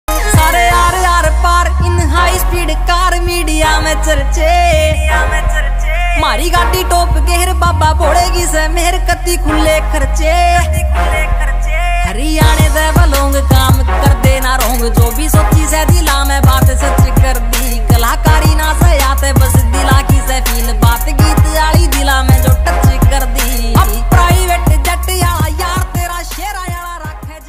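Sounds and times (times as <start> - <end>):
Haryanvi ringtone music: 0.1 - 27.4.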